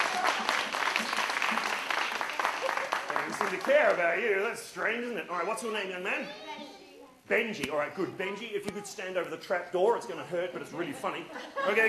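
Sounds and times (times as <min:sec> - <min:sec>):
thunderous crowd applause as a boy comes to the stage: 0:00.0 - 0:04.0
speech: 0:03.4 - 0:06.7, 0:07.3 - 0:11.8
laughter: 0:10.8 - 0:11.8.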